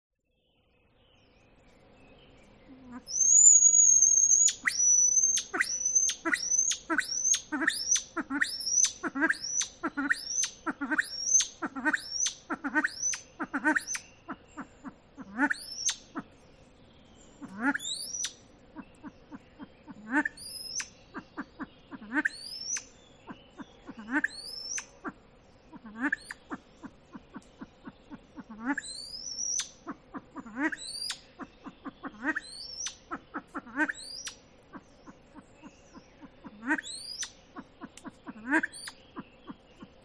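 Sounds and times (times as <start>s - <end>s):
bird thin rising whistles: 3.1s - 7.4s
silver pheasant clucking and squealing: 4.4s - 16.3s, 17.4s - 40.0s.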